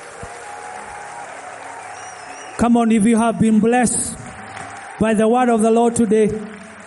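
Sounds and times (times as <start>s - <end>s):
audience clapping hands: 0.0s - 6.8s
speech: 2.6s - 4.2s, 5.0s - 6.5s.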